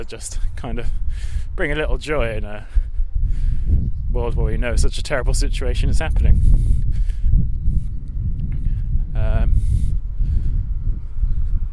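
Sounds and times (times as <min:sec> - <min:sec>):
speech: 0:00.0 - 0:07.4
strong wind blowing into the microphone: 0:00.0 - 0:11.7.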